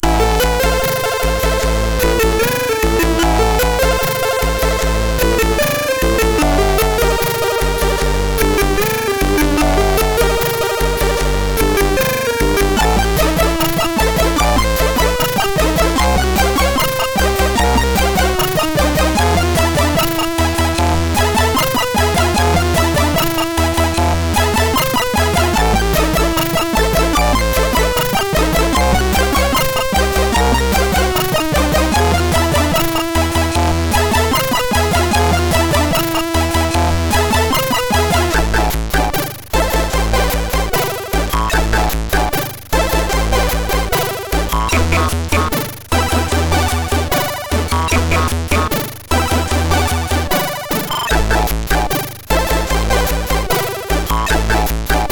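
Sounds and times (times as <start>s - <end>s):
MOS6581R3 SID chip sound: 0.0s - 55.0s.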